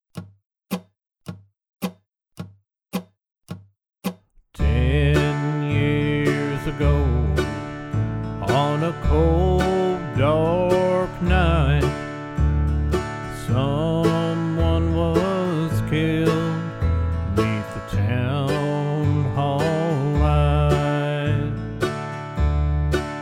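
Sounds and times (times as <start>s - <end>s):
person singing in the key of D: 4.6s - 12.2s, 13.1s - 22.0s
backing track in the key of D: 4.6s - 23.2s.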